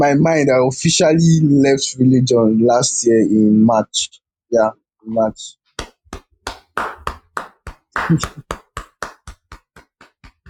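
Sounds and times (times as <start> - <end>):
speech: 0.0 - 5.6, 8.1 - 8.6
sharp hand claps: 5.8 - 10.4.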